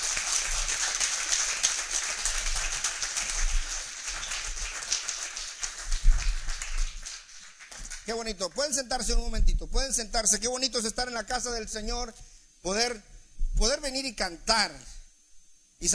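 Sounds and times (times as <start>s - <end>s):
audience applause: 0.0s - 8.1s
speech: 8.1s - 14.9s.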